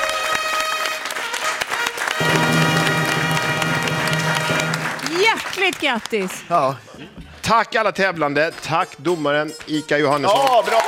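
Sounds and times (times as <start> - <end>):
studio audience applause and cheering: 0.0 - 6.3
steady musical tone: 2.2 - 5.2
speech: 5.6 - 10.8.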